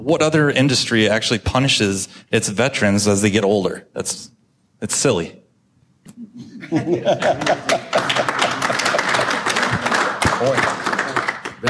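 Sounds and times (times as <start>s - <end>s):
speech: 0.0s - 5.4s, 6.1s - 8.3s, 10.4s - 10.8s
audience laughter: 6.6s - 9.8s
audience applause: 7.2s - 11.6s.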